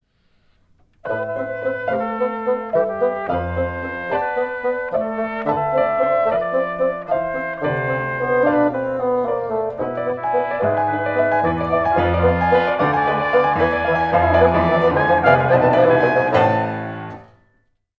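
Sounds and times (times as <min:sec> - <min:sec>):
backing music: 0:01.1 - 0:17.3.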